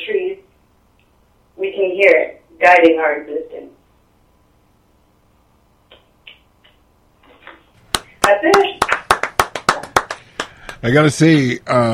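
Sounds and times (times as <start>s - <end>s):
speech: 1.9s - 3.7s, 8.3s - 8.7s, 10.8s - 11.9s
audience clapping after a poem: 7.8s - 11.1s.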